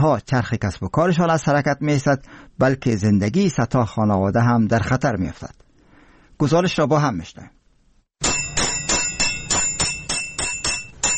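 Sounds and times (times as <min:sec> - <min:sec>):
speech: 0:00.0 - 0:05.6, 0:06.4 - 0:07.6
hammers striking tin in a tinsmith's workshop: 0:08.2 - 0:11.1.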